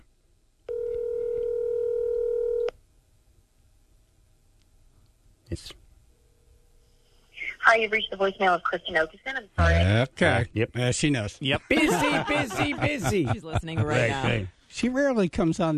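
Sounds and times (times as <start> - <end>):
outgoing phone call ringing: 0.7 - 2.7
speech: 5.6 - 5.8, 7.7 - 15.7
laughter: 11.3 - 14.5.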